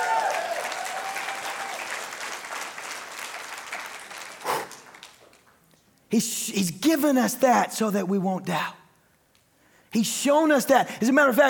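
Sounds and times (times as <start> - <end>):
crowd applause: 0.0 - 5.5
speech: 6.1 - 8.8, 10.0 - 11.4.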